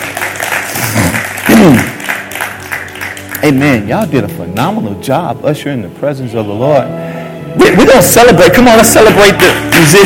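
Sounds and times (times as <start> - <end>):
audience clapping hands: 0.0 - 4.8, 8.7 - 10.0
speech: 1.6 - 1.9, 3.4 - 10.0.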